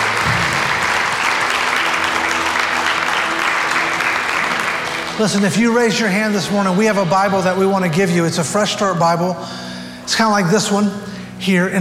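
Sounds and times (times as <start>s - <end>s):
audience applause: 0.0s - 8.2s
speech: 5.2s - 11.7s.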